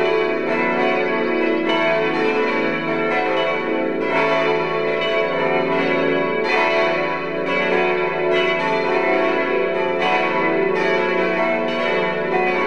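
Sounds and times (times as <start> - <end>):
church bells ringing: 0.0 - 12.6.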